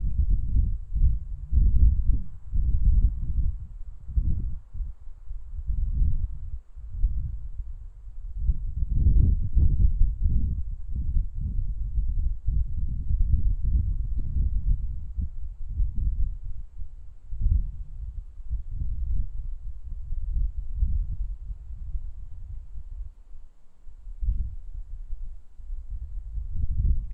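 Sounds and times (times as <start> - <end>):
wind: 0.0 - 27.1.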